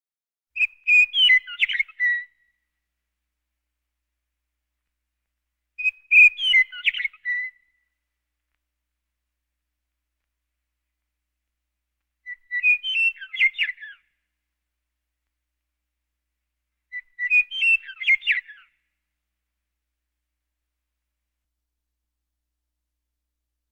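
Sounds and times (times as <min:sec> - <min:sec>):
birds: 0:00.6 - 0:02.7, 0:05.8 - 0:08.1, 0:12.0 - 0:14.4, 0:16.7 - 0:19.0.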